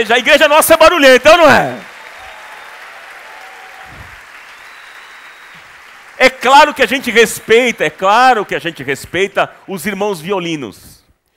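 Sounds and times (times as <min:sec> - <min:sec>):
speech: 0:00.0 - 0:01.9, 0:06.2 - 0:10.9
audience applause: 0:01.3 - 0:09.3.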